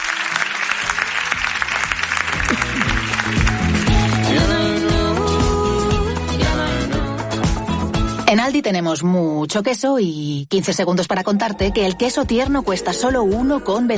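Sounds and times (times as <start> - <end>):
audience applause: 0.0 - 4.5
upbeat music with a steady beat: 0.0 - 9.0, 10.6 - 13.9
speech: 8.3 - 13.9.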